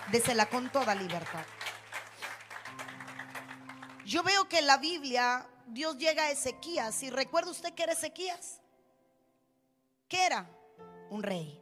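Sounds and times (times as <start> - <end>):
audience clapping hands: 0.0 - 4.4
speech: 0.1 - 1.6, 4.1 - 8.6, 10.1 - 11.6.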